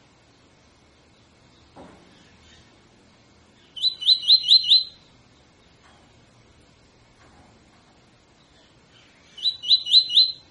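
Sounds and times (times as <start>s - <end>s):
double-collared seedeater tutor song: 1.0s - 6.1s, 8.2s - 10.4s.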